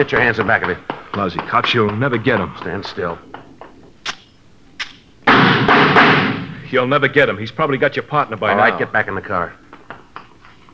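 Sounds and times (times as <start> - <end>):
speech: 0.0 - 3.4, 6.7 - 9.6
gunshots: 4.0 - 6.7.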